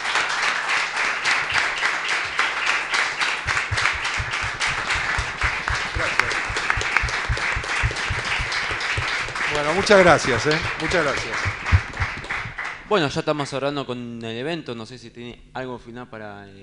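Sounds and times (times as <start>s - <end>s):
audience applause: 0.0s - 12.9s
speech: 9.6s - 11.4s, 12.9s - 16.6s.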